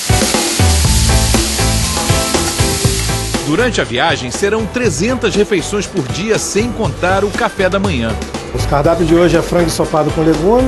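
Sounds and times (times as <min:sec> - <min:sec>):
onion sizzling while being sautéed: 0:00.0 - 0:05.4
speech: 0:03.5 - 0:10.6.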